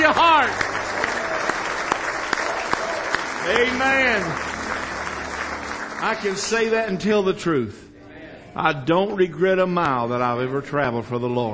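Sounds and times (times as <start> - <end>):
church congregation clapping hands in praise: 0.0 - 7.2
speech: 3.5 - 4.5, 6.0 - 7.8, 8.5 - 11.5.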